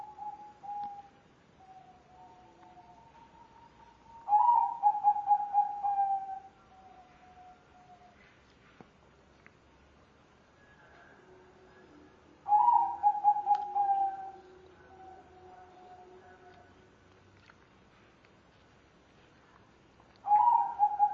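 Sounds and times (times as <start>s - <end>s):
spotted dove cooing: 0.0s - 1.1s, 1.7s - 7.6s, 12.5s - 16.5s, 20.2s - 21.1s.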